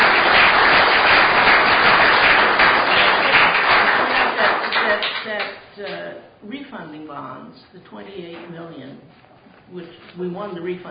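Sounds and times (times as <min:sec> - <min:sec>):
round of applause: 0:00.0 - 0:05.6
speech: 0:06.2 - 0:10.8.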